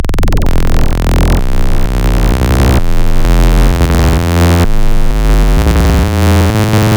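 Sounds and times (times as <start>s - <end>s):
phase-shifting wavetable synth: 0.1s - 6.9s.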